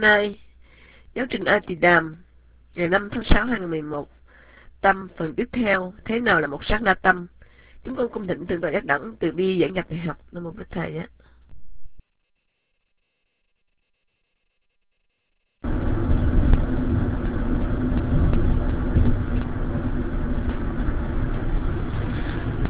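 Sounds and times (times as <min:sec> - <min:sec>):
speech: 0:00.0 - 0:00.4, 0:01.2 - 0:02.2, 0:02.8 - 0:04.2, 0:04.8 - 0:11.2
car engine rumble recorded inside a moving vehicle: 0:15.6 - 0:22.6.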